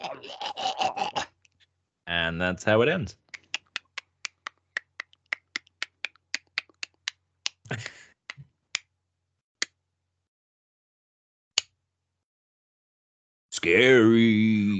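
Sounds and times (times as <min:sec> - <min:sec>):
speech: 0:02.3 - 0:03.2, 0:13.6 - 0:14.5
unearthly sharp dry clicks: 0:03.2 - 0:07.7.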